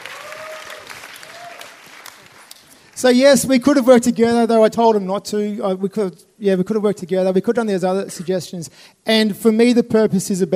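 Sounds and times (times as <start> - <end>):
room applauding for a speaker: 0.0 - 3.6
speech: 3.0 - 10.5.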